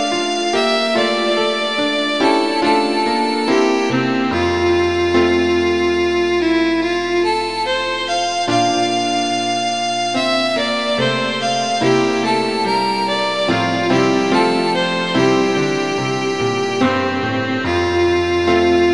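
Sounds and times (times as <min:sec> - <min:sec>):
piano: 0:00.0 - 0:18.9
violin: 0:00.0 - 0:18.9.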